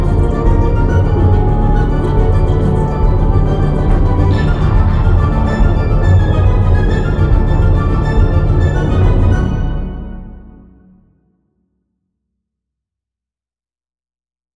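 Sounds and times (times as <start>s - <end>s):
combat music: 0.0s - 11.1s.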